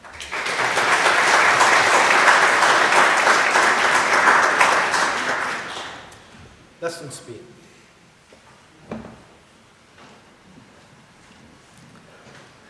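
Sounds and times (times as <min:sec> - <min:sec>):
audience applause: 0:00.0 - 0:06.1
speech: 0:06.9 - 0:07.6.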